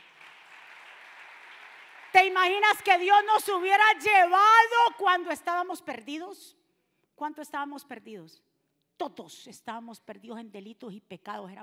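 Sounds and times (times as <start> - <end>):
loud audience applause: 0.0 - 2.6
speech: 2.1 - 6.6, 7.2 - 11.6.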